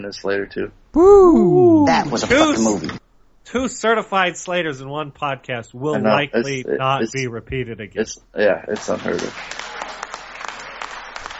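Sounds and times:
speech: 0:00.0 - 0:09.6
clapping sound effect hand claps: 0:08.8 - 0:11.3.

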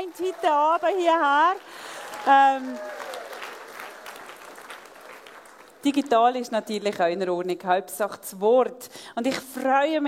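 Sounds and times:
crowd applauding: 0:00.0 - 0:05.9
speech: 0:00.1 - 0:03.0, 0:05.8 - 0:10.0.

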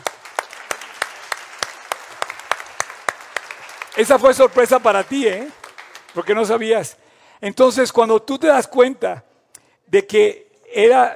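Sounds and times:
audience applause: 0:00.0 - 0:06.7
speech: 0:04.0 - 0:09.3, 0:09.9 - 0:11.1.

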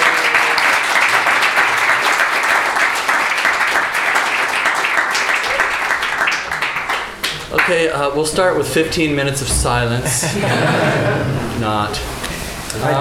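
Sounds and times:
laughter: 0:00.0 - 0:01.4, 0:09.7 - 0:12.9
audience applause welcoming a guest to a music session: 0:00.0 - 0:07.9
speech: 0:07.7 - 0:12.9.

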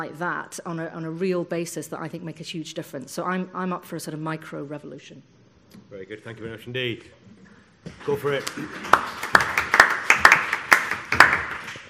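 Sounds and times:
speech: 0:00.0 - 0:09.3
sparse audience applause: 0:08.3 - 0:11.8.

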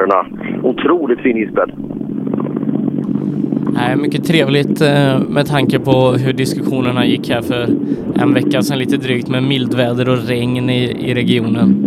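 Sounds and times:
speech: 0:00.0 - 0:01.9, 0:03.2 - 0:11.8
two rally car engines roaring on icy road: 0:03.0 - 0:11.8.

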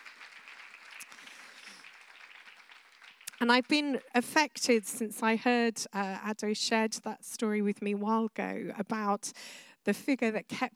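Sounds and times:
audience applause: 0:00.0 - 0:04.1
speech: 0:03.4 - 0:10.7.

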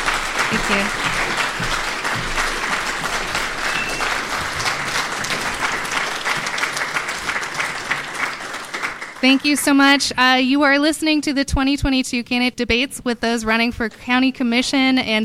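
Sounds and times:
audience applause for debate candidates: 0:00.0 - 0:10.0
speech: 0:00.7 - 0:01.7, 0:09.2 - 0:15.2.

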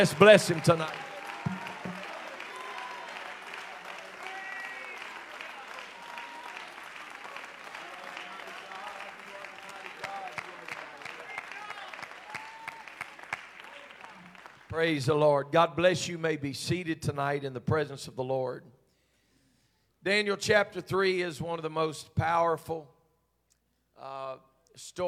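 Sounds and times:
speech: 0:00.0 - 0:01.1, 0:14.8 - 0:18.7, 0:20.0 - 0:23.0, 0:24.0 - 0:25.0
many voices cheering and calling out: 0:00.0 - 0:14.6
large crowd clapping: 0:00.0 - 0:14.8.

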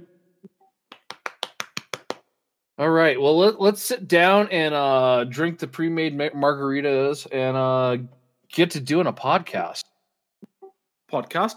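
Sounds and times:
applause sound effect: 0:00.9 - 0:02.2
speech: 0:02.8 - 0:09.9, 0:11.1 - 0:11.5.

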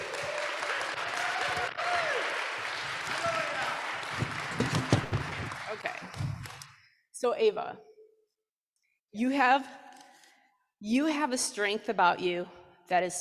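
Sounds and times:
audience round of applause: 0:00.0 - 0:06.7
speech: 0:07.2 - 0:07.9, 0:09.2 - 0:09.8, 0:10.8 - 0:13.2.

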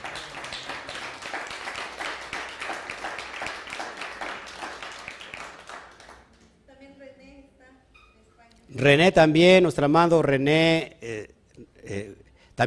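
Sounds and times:
crowd applause: 0:00.0 - 0:06.4
speech: 0:08.7 - 0:12.6.

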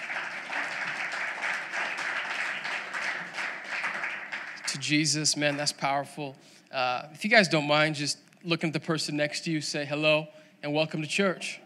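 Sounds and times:
audience applauding the worship team: 0:00.0 - 0:05.7
speech: 0:04.8 - 0:11.6.

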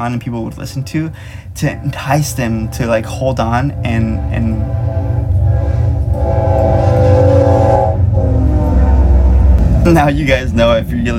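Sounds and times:
speech: 0:00.0 - 0:04.8, 0:09.8 - 0:11.1
train rolling past on tracks beside a home: 0:00.0 - 0:11.1
train horn: 0:00.8 - 0:09.7.

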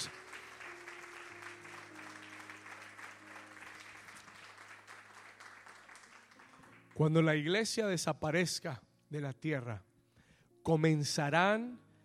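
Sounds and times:
audience applauding: 0:00.0 - 0:07.2
speech: 0:07.0 - 0:09.9, 0:10.6 - 0:11.8.

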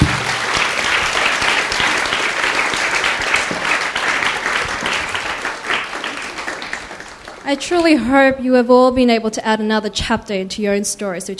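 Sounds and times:
audience applause: 0:00.0 - 0:08.0
speech: 0:07.5 - 0:11.3.

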